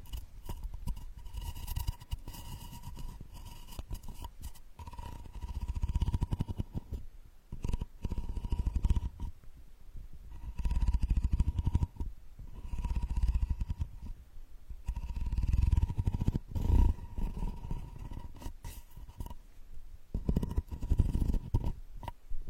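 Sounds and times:
straw ear digging scraping: 0.0s - 9.4s, 10.3s - 14.2s, 14.8s - 19.5s, 20.1s - 22.2s.

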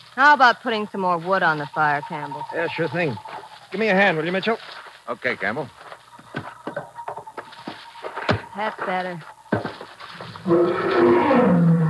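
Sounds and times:
speech: 0.2s - 5.9s, 8.6s - 9.7s, 10.4s - 11.7s
big cat roaring at night: 10.4s - 11.8s.

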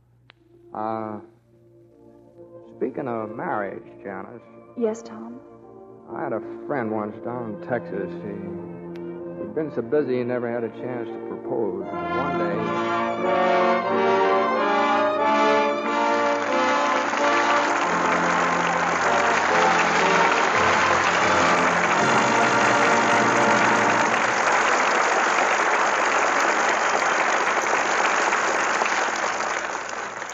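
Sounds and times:
speech: 0.7s - 1.4s, 2.8s - 5.5s, 6.1s - 8.7s, 9.5s - 14.2s
studio audience applause: 15.4s - 30.3s.

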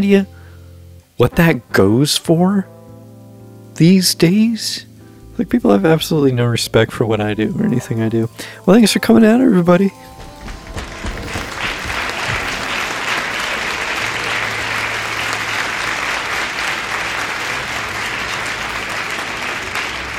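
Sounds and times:
speech: 0.0s - 0.3s, 1.2s - 2.8s, 3.8s - 10.1s
audience applause: 9.9s - 20.1s.

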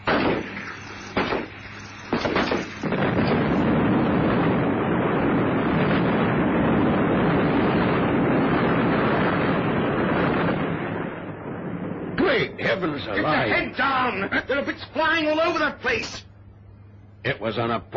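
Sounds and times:
helicopter exploding: 0.0s - 14.5s
speech: 12.8s - 16.3s, 17.2s - 17.9s
laughter: 14.1s - 15.0s.

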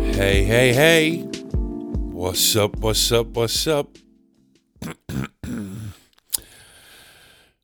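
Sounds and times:
speech: 0.2s - 1.3s, 2.2s - 4.1s
throat clearing: 4.9s - 6.5s.

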